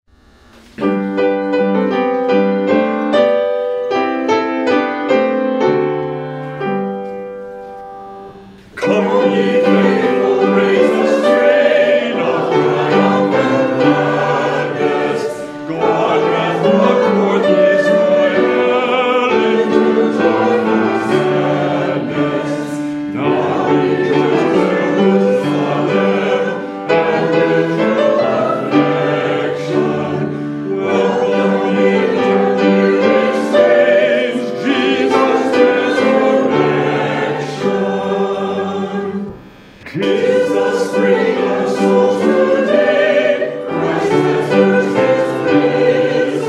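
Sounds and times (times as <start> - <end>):
hymn: 0.8 - 46.4.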